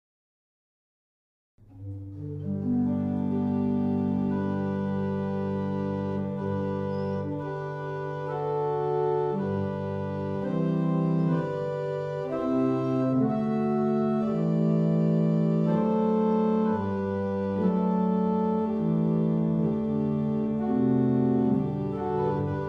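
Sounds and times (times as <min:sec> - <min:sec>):
barrel organ: 0:02.0 - 0:22.6.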